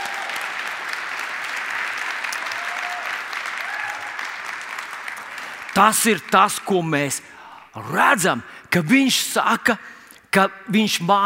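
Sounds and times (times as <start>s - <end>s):
audience applause: 0.0s - 6.6s
speech: 5.8s - 11.2s.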